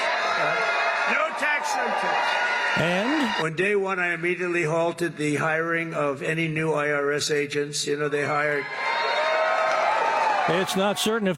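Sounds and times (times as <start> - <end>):
crowd cheering President Trump at a Las Vegas rally: 0.0 - 3.5, 8.5 - 11.3
speech: 0.4 - 9.0, 10.4 - 11.3.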